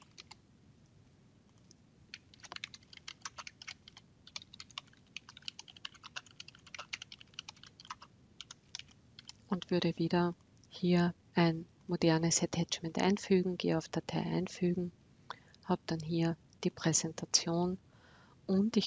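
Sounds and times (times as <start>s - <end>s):
typing an e-mail on a computer keyboard: 0.0s - 0.4s, 1.6s - 9.8s
speech: 9.6s - 15.0s, 15.7s - 17.8s, 18.5s - 18.8s.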